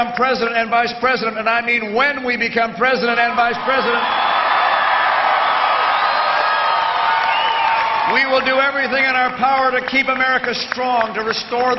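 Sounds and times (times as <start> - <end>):
speech: 0.0 - 4.3, 8.1 - 11.7
enthusiastic crowd cheering at a Mitt Romney political rally in Lancaster, Ohio: 3.1 - 11.7.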